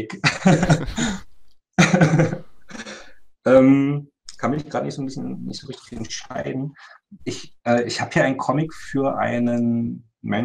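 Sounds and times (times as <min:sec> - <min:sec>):
speech: 0:00.0 - 0:01.3, 0:01.9 - 0:02.5, 0:03.4 - 0:10.4
laughter: 0:00.1 - 0:01.2, 0:01.8 - 0:03.0
cough: 0:01.8 - 0:03.0.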